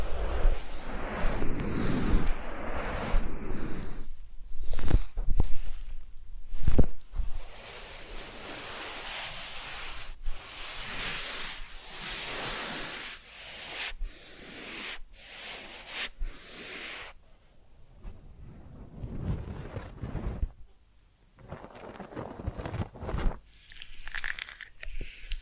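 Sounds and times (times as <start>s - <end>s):
soft rustling: 0.0s - 13.1s, 15.6s - 23.6s
massage rubbing and brushing: 0.0s - 20.7s, 21.4s - 25.4s.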